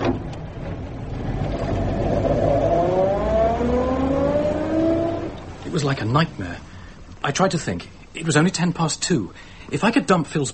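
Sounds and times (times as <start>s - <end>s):
car engine revving as the car pulls away: 0.0s - 5.8s
speech: 5.8s - 6.6s, 7.2s - 10.5s.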